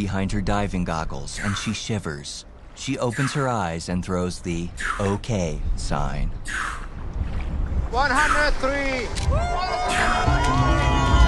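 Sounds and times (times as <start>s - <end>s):
speech: 0.0s - 6.9s, 7.9s - 11.0s
crew applauding and cheering: 9.1s - 11.2s.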